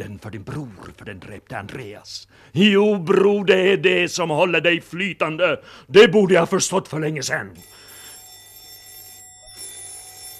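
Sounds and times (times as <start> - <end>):
speech: 0.0 - 7.9
telephone ringing with electronic trill: 6.4 - 10.3.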